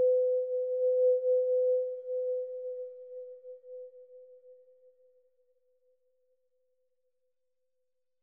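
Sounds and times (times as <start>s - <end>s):
sine tone with reverb: 0.0s - 4.7s.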